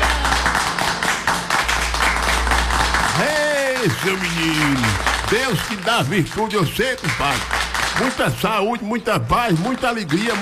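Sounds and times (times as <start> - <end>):
applause clapping: 0.0 - 10.4
speech: 3.2 - 10.4.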